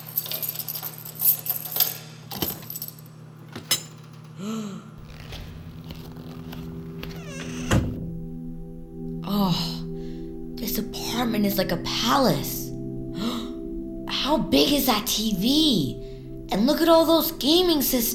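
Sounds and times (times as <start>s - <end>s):
keys jangling: 0.0s - 4.4s
faint steady hum: 0.0s - 18.1s
speech: 4.4s - 4.9s, 11.3s - 12.6s, 14.3s - 18.1s.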